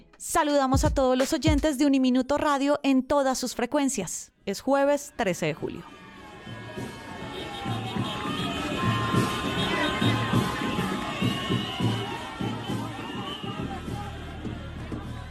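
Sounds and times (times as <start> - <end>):
speech: 0.2 - 6.6
rhythmic pounding: 0.7 - 1.7, 6.6 - 15.2
large crowd cheering and shouting for a returning senator: 5.8 - 15.2
whistles: 7.4 - 14.1.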